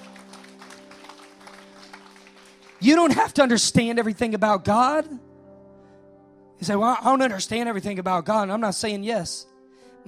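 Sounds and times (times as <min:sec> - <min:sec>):
group clapping: 0:00.0 - 0:03.5
speech: 0:02.8 - 0:05.3, 0:06.6 - 0:10.0.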